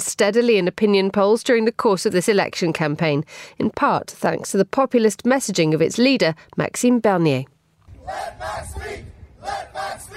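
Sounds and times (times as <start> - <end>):
speech: 0.2 - 10.1
protesters chanting outside the Canadian Museum of History: 7.9 - 10.1.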